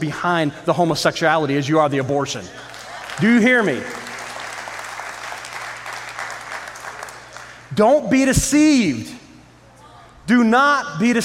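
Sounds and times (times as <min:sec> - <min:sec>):
speech: 0:00.0 - 0:04.0, 0:07.8 - 0:09.2, 0:10.3 - 0:11.2
crowd applauding: 0:02.5 - 0:07.7.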